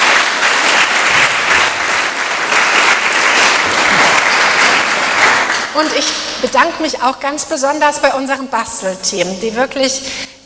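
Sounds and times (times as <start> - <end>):
applause from church audience: 0.0 - 5.9
speech: 5.8 - 10.4.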